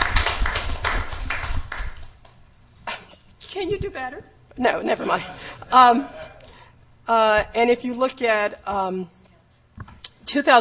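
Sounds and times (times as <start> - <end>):
group applause: 0.0 - 2.4
speech: 3.6 - 6.2, 7.1 - 9.2, 10.3 - 10.6.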